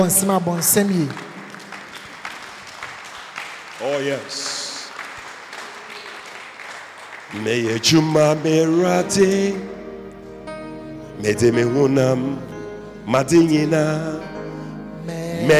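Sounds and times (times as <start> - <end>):
speech: 0.0 - 1.3, 3.8 - 4.5, 7.3 - 9.8, 11.2 - 12.5, 13.1 - 14.3, 15.4 - 15.5
audience clapping: 0.0 - 9.6.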